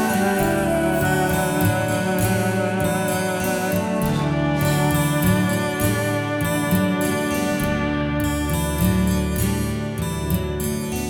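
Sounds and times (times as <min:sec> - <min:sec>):
happy flute song: 0:00.0 - 0:11.0.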